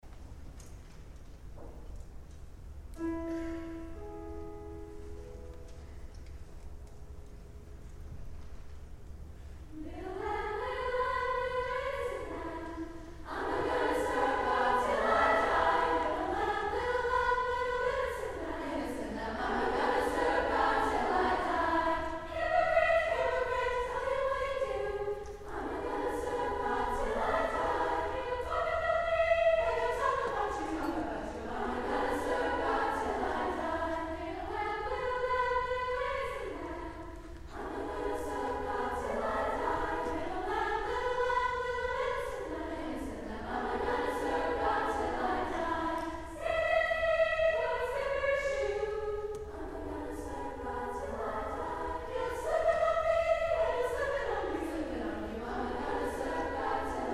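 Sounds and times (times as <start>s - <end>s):
vocals: 9.7s - 57.1s.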